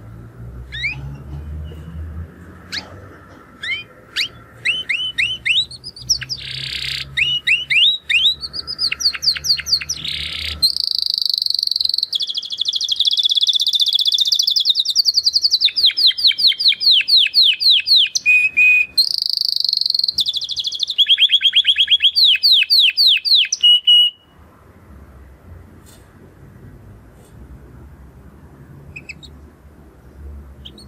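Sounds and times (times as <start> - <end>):
canary singing: 0.6 - 2.0, 2.6 - 24.4, 28.8 - 29.5, 30.5 - 30.8.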